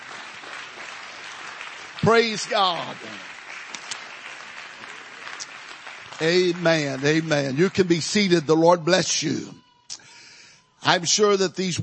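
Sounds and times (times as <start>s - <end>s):
audience clapping hands: 0.0s - 9.4s
speech: 2.0s - 3.3s, 6.2s - 9.6s, 10.8s - 11.8s.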